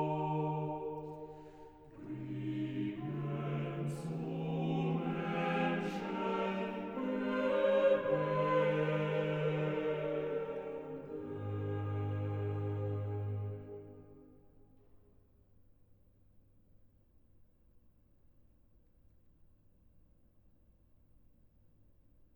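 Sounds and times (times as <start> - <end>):
organ chorale: 0.0 - 14.3.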